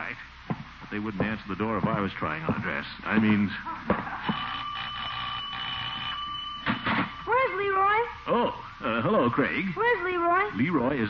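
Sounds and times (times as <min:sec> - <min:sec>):
speech: 0:00.9 - 0:04.4, 0:08.3 - 0:11.0
doorbell ringing: 0:04.2 - 0:08.1.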